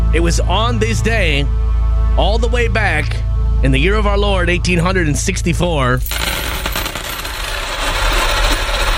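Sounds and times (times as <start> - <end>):
speech: 0.1 - 6.7
coins dropping: 6.0 - 8.9.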